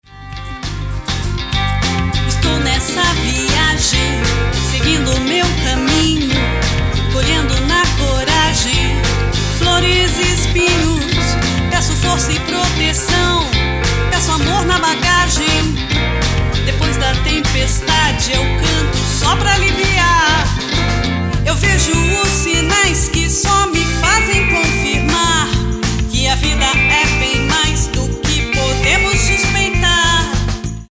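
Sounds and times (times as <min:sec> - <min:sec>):
blues music: 0:00.0 - 0:30.9.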